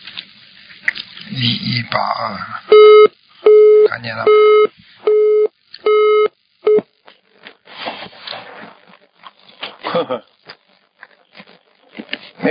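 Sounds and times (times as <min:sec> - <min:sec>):
speech: 0:01.4 - 0:03.2, 0:04.0 - 0:04.9, 0:10.0 - 0:10.3
telephone busy tone after hang-up: 0:02.7 - 0:06.8.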